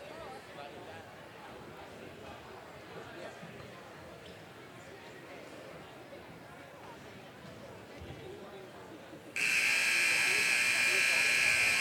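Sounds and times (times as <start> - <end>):
faint murmur: 0.0 - 11.8
basketball game buzzer: 9.4 - 11.8.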